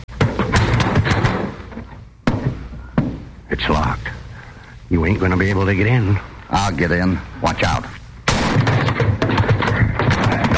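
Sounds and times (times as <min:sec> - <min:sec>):
door being crashed: 0:00.2 - 0:02.6, 0:08.3 - 0:10.5
speech: 0:03.5 - 0:04.2, 0:04.9 - 0:08.0.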